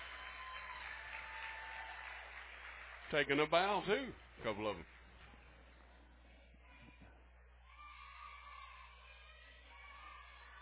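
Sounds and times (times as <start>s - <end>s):
crowd applause for cheerleaders: 0.0s - 3.9s
speech: 3.1s - 5.0s.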